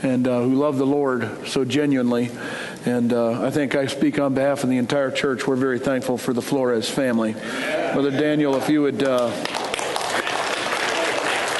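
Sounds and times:
speech: 0.0s - 9.6s
audience clapping: 8.4s - 11.5s.

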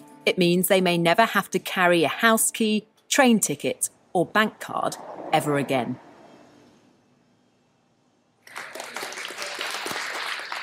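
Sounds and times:
speech: 0.2s - 6.1s
applause at a microchip implant party: 8.4s - 10.6s.

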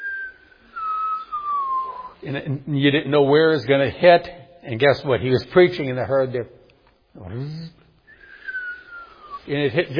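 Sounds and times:
person whistling falling tone imitating falling buzz bomb: 0.0s - 2.2s, 8.1s - 9.5s
speech: 2.2s - 6.6s, 7.2s - 7.8s, 9.5s - 9.9s.

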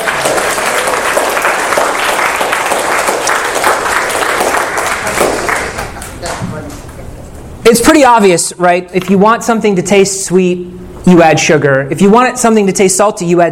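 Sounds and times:
audience applause: 0.0s - 6.3s
speech: 7.7s - 13.5s.

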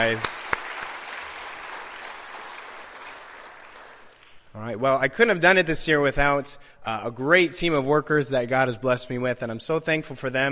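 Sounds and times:
speech: 0.0s - 0.4s, 4.6s - 10.5s
crowd applause: 0.0s - 4.4s.

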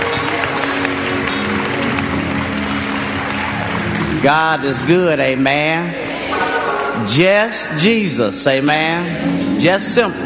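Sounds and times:
audience hand clapping in praise: 0.0s - 6.0s
speech: 4.2s - 6.4s, 7.0s - 10.2s.

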